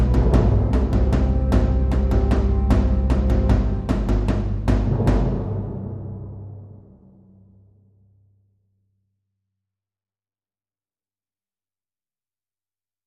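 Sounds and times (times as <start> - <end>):
drums: 0.0 - 7.7
bass: 0.0 - 8.9.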